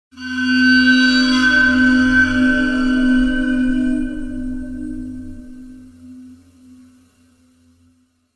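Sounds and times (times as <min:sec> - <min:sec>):
eerie metal sound: 0:00.1 - 0:06.7.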